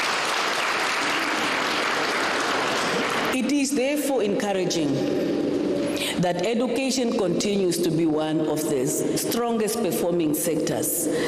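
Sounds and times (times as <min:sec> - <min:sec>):
audience round of applause: 0:00.0 - 0:03.4
speech: 0:03.8 - 0:11.2.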